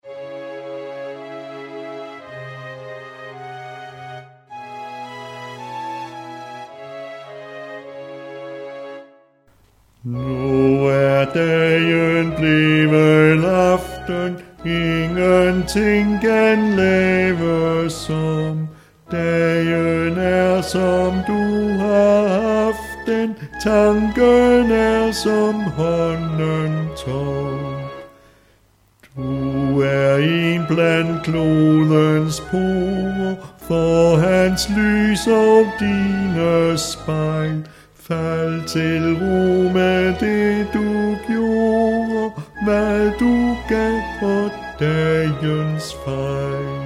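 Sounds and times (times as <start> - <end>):
music with vocals in C sharp minor: 9.6 - 28.4, 29.0 - 46.8.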